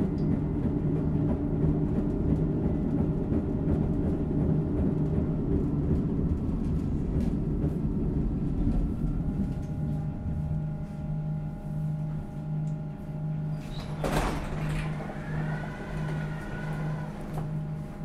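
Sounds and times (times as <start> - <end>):
train arriving: 0.0 - 18.0
door sliding clatter: 13.5 - 17.6.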